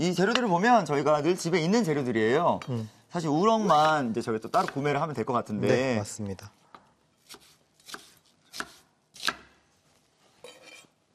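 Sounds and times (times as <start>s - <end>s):
speech: 0.0s - 6.6s
knife chopping onion on board: 7.2s - 9.5s.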